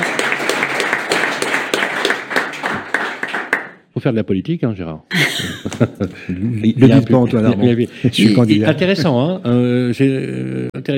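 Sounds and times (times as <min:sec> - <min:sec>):
applause: 0:00.0 - 0:03.9
speech: 0:04.0 - 0:10.9
laughter: 0:05.1 - 0:09.7.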